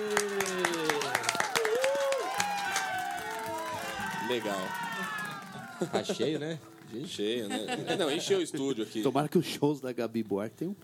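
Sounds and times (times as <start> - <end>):
studio audience clapping: 0.0 - 8.1
speech: 4.3 - 5.2, 5.8 - 10.8
laughter: 5.4 - 9.0.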